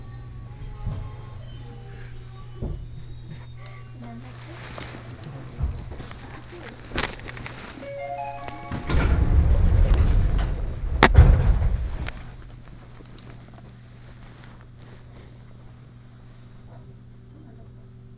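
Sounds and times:
Senseki Line train low hum: 0.0s - 18.1s
faint voices: 0.0s - 18.1s
scattered clicks and knocks: 4.7s - 13.4s.

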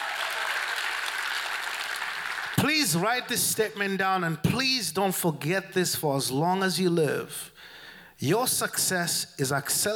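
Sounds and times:
church congregation clapping: 0.0s - 3.1s
speech: 2.6s - 9.9s.

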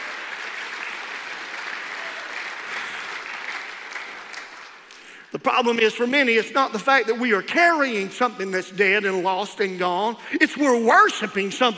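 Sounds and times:
people clapping: 0.0s - 5.3s
speech: 5.3s - 11.7s.

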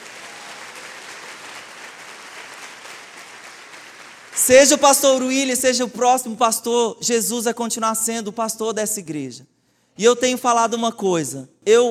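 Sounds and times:
audience applauding: 0.0s - 4.8s
speech: 4.5s - 11.8s.

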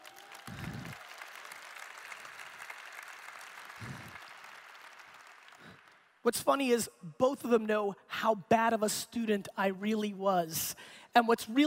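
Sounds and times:
audience applause: 0.0s - 6.1s
speech: 6.2s - 11.6s.

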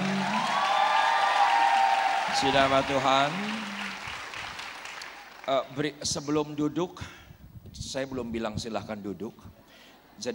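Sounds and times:
audience applause: 0.0s - 5.7s
speech: 2.4s - 3.7s, 5.5s - 7.2s, 7.8s - 9.6s.

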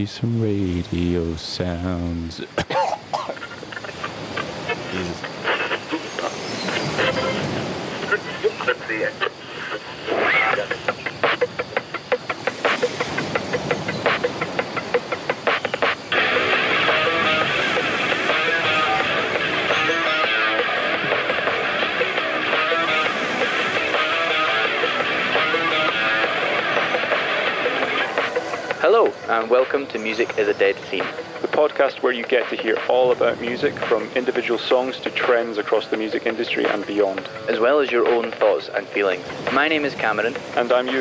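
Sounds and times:
speech: 0.0s - 3.2s, 8.7s - 9.4s, 29.3s - 40.9s
ocean waves coming in: 0.0s - 40.9s.

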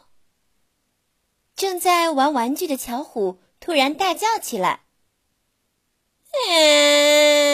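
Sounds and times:
speech: 1.7s - 4.8s, 6.3s - 7.5s
baby crying: 6.4s - 7.5s.

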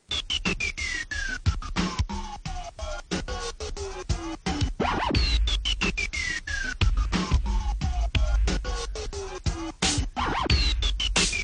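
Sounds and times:
turntable scratches: 0.0s - 11.4s
deep bass line: 4.7s - 6.1s, 6.7s - 11.4s.

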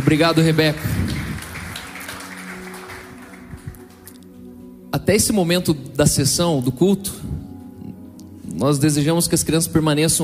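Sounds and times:
applause: 0.0s - 4.2s
speech: 0.1s - 1.0s, 5.0s - 7.4s, 8.6s - 10.2s.

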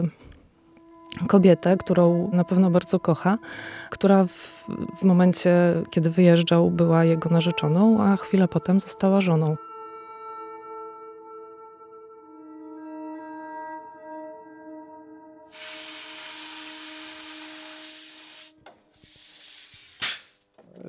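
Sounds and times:
speech: 0.0s - 0.2s, 1.2s - 9.7s
compressed air blowing through car radiator: 15.5s - 20.4s.

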